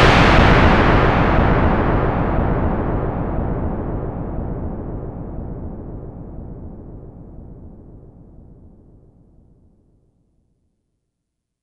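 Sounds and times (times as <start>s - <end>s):
Minimoog synthesizer thunder sound: 0.0s - 8.8s.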